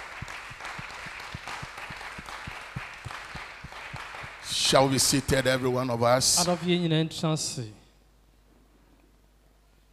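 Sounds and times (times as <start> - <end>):
audience applause: 0.0 - 5.6
speech: 4.7 - 7.8.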